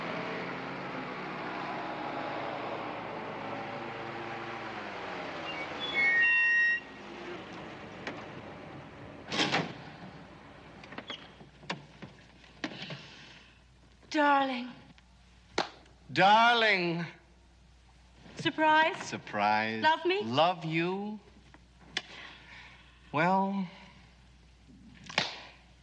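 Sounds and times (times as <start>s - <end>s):
car engine humming as a car pulls up: 0.0s - 12.3s
speech: 14.2s - 14.8s, 16.2s - 17.2s, 18.4s - 21.2s, 23.1s - 23.8s.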